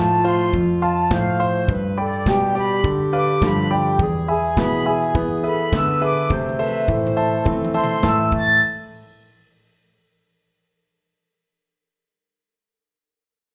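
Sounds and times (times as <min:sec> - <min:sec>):
pop song: 0:00.0 - 0:08.8.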